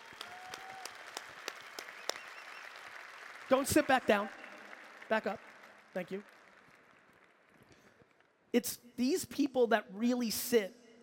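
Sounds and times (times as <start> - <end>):
audience clapping: 0.0 - 8.5
speech: 3.5 - 4.4, 5.1 - 6.3, 8.5 - 11.0.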